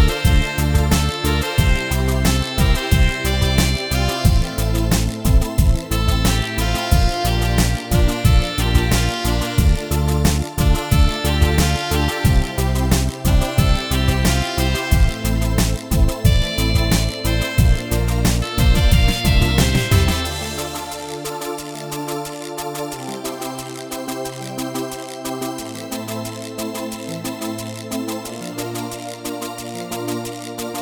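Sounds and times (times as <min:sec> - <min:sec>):
reggae song: 0:00.0 - 0:22.1.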